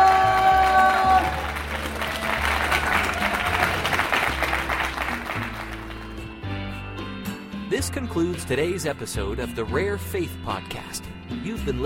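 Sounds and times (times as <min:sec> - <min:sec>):
audience applause: 0:00.0 - 0:06.2
speech: 0:08.0 - 0:11.8.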